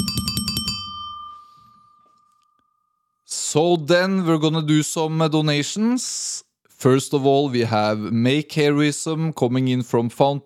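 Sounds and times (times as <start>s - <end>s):
bicycle bell ringing: 0.0s - 2.8s
speech: 3.6s - 10.4s.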